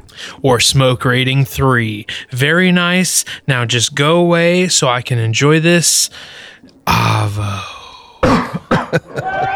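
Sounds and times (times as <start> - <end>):
speech: 0.4 - 7.7
person sneezing: 6.9 - 8.9
laughter: 8.6 - 9.5.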